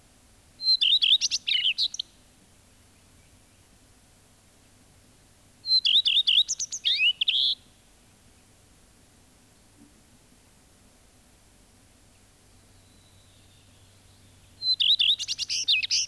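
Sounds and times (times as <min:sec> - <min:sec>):
Common Redstart song: 0:00.6 - 0:02.2, 0:02.8 - 0:03.9, 0:05.6 - 0:08.5, 0:12.3 - 0:16.0.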